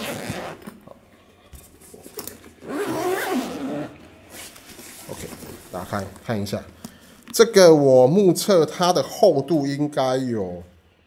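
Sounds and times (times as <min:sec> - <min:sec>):
guitar case zipper being pulled open: 0:00.0 - 0:00.9, 0:02.2 - 0:04.5
speech: 0:05.8 - 0:06.8, 0:07.4 - 0:10.7.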